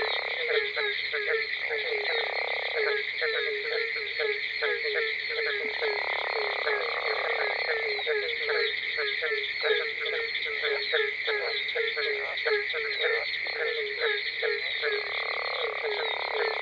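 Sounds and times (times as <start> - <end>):
barking tree frog chorus: 0.0 - 16.5.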